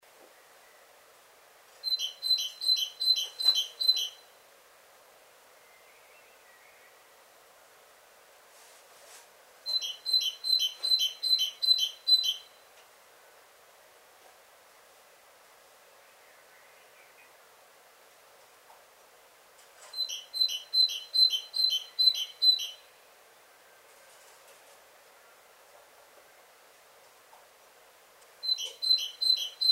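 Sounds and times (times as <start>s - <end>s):
great tit calling: 1.8s - 4.2s, 9.7s - 12.6s, 20.0s - 22.8s, 28.4s - 29.7s
faint rustling: 8.4s - 9.4s, 23.8s - 26.3s.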